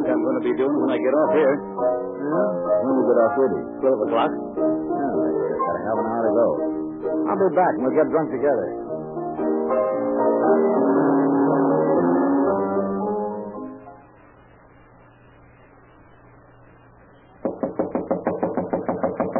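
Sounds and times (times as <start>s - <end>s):
swelling musical tone: 0.0s - 14.5s
speech: 0.4s - 4.7s, 5.8s - 8.8s, 10.5s - 11.2s
pounding on a door: 17.4s - 19.3s.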